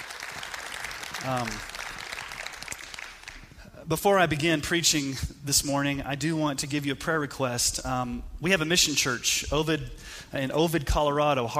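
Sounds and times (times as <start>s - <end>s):
audience applause: 0.0s - 3.5s
speech: 1.2s - 1.7s, 3.9s - 11.5s.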